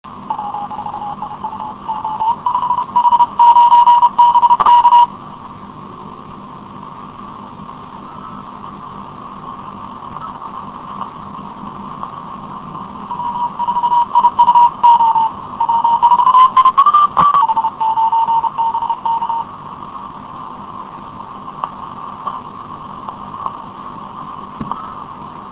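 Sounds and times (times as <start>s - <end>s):
CW Morse code beeps: 0.3s - 5.1s, 13.1s - 19.5s.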